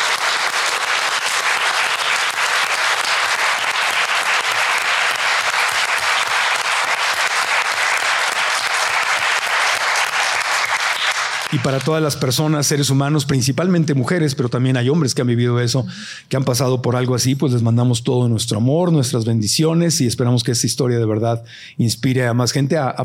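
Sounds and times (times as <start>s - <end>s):
audience applause: 0.0s - 12.3s
speech: 11.6s - 23.0s.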